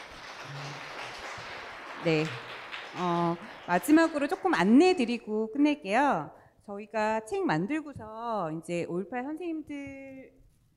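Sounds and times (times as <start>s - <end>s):
audience applauding: 0.0s - 4.8s
speech: 2.0s - 10.4s.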